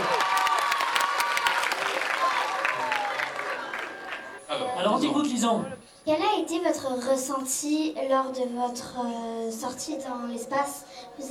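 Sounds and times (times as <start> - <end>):
audience applauding a pupil: 0.0 - 4.5
speech: 4.8 - 11.2.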